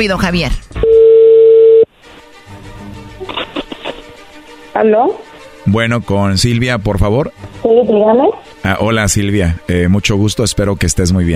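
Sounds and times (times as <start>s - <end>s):
speech: 0.0s - 0.8s, 4.8s - 11.3s
telephone ringing tone: 0.8s - 1.9s.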